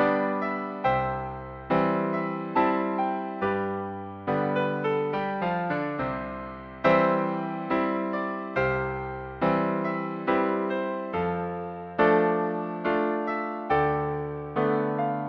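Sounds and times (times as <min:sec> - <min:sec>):
piano piece: 0:00.0 - 0:15.2.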